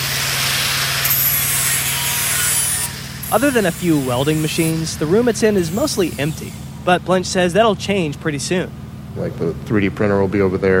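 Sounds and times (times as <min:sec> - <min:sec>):
grinder prepping steel plates for welding: 0:00.0 - 0:06.7
speech: 0:03.3 - 0:10.7.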